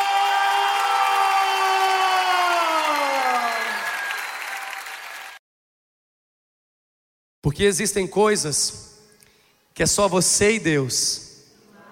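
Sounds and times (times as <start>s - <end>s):
loud applause from audience: 0.0s - 5.4s
speech: 7.5s - 8.9s, 9.8s - 11.3s.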